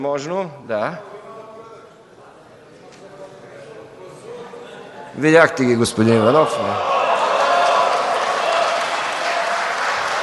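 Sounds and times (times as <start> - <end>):
speech: 0.0 - 1.2, 5.2 - 6.9
applause approving a proposal: 7.3 - 10.2.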